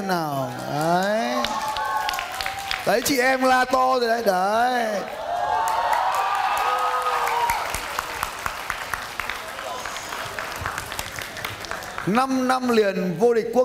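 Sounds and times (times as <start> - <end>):
speech: 0.0 - 1.1, 2.9 - 5.2, 12.0 - 13.6
crowd applause: 0.4 - 3.4, 5.0 - 12.5.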